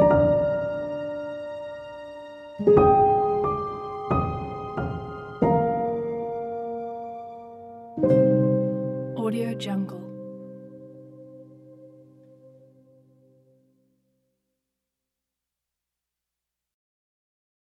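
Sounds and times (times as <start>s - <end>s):
cello: 0.0s - 12.8s
ambient emotional sad background piano: 0.0s - 13.7s.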